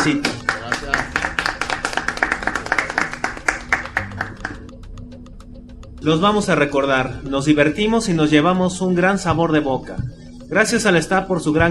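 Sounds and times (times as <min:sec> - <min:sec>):
speech: 0:00.0 - 0:00.3, 0:06.0 - 0:11.6
people clapping: 0:00.0 - 0:05.0.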